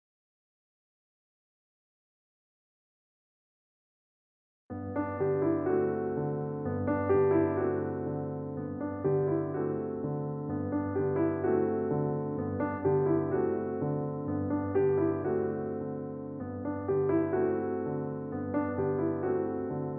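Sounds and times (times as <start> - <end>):
piano: 4.7 - 19.9.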